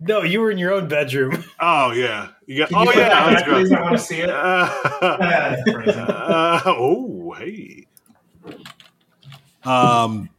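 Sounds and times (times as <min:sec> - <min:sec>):
speech: 0:00.0 - 0:08.8, 0:09.6 - 0:10.3
laughter: 0:01.3 - 0:07.8
typing on a computer keyboard: 0:07.8 - 0:09.5.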